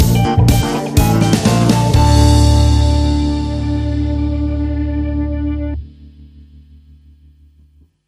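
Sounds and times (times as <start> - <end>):
funky party music stinger: 0.0 - 5.3.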